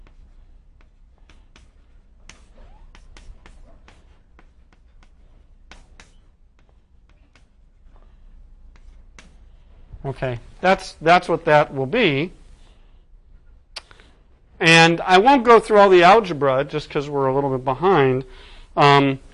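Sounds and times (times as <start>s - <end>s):
writing by hand during a lecture: 0.0s - 9.9s
speech: 10.0s - 12.4s, 14.8s - 19.3s.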